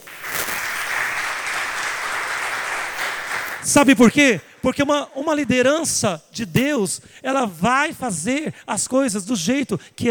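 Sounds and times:
audience applause: 0.0s - 3.9s
speech: 3.7s - 10.0s.

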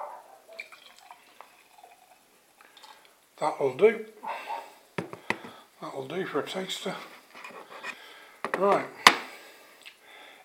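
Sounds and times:
stout pouring into a glass: 0.6s - 3.1s
speech: 3.4s - 4.4s, 5.8s - 7.2s, 8.6s - 9.0s.

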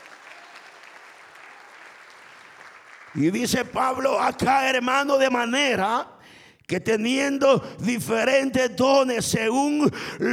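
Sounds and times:
audience applauding: 0.0s - 4.2s
speech: 3.1s - 6.1s, 6.7s - 10.3s.

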